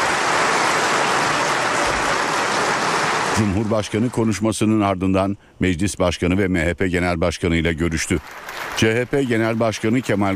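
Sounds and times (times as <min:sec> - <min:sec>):
parliament members applauding: 0:00.0 - 0:04.4, 0:07.9 - 0:10.3
speech: 0:03.4 - 0:10.3.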